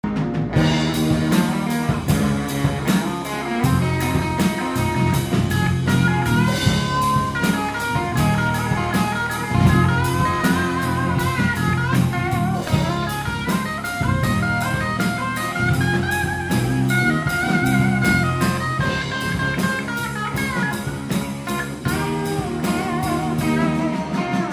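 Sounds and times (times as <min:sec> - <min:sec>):
Les Paul electric guitar solo: 0:00.1 - 0:24.5.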